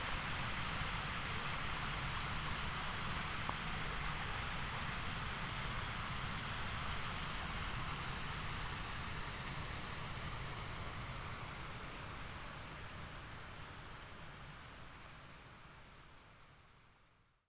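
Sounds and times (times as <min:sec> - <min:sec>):
water rushing over a dam: 0:00.0 - 0:13.6.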